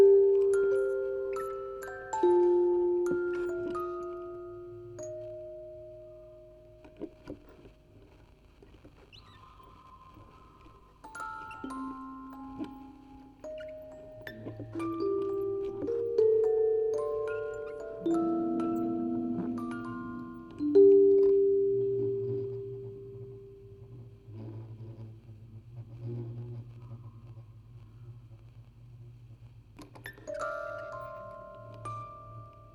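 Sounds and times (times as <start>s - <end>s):
music box quartet on tape with vocoder: 0.0s - 7.7s, 9.3s - 23.9s, 30.0s - 32.7s.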